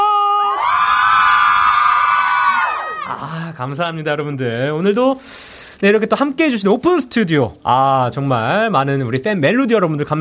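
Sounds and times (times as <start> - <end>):
crowd of fans shrieking and cheering: 0.0 - 3.2
speech: 3.6 - 10.1.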